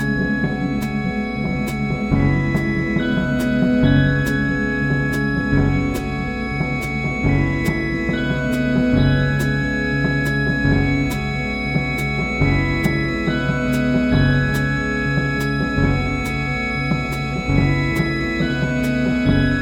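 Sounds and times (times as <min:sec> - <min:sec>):
drum kit: 0:00.0 - 0:19.5
stereo music on Farfisa Compact Duo Deluxe: 0:00.0 - 0:19.5.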